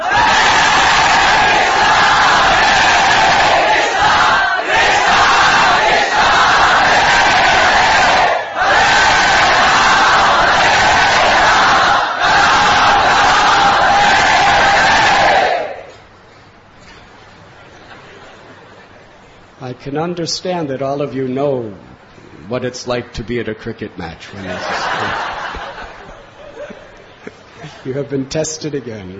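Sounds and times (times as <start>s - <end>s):
large crowd chanting loudly in unison: 0.0s - 15.9s
speech: 19.8s - 21.9s, 22.5s - 25.4s, 27.8s - 29.1s
laughter: 24.4s - 27.9s.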